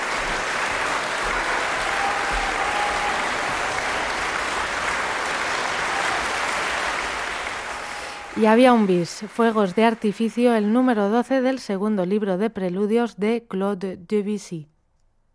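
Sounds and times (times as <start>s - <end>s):
concert audience applause: 0.0s - 10.4s
speech: 8.4s - 14.7s.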